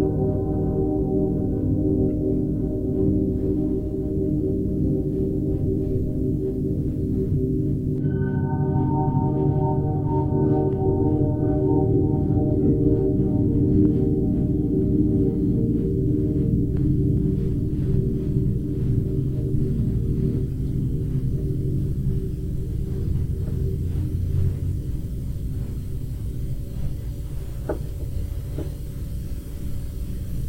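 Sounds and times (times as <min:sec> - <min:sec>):
ambient piano music: 0:00.0 - 0:30.3.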